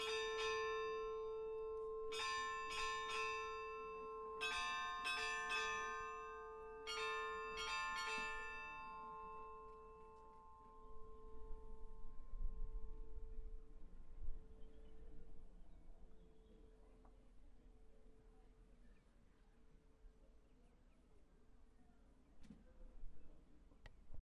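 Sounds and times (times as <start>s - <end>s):
church bells of Reykholtskirkja: 0.0s - 14.6s.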